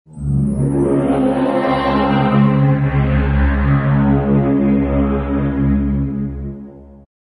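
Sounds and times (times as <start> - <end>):
low ethereal chord: 0.1 - 7.0.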